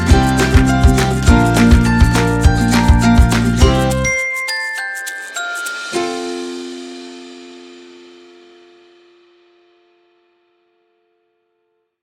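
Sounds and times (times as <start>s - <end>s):
happy background music for cooking recipe videos: 0.0s - 7.6s.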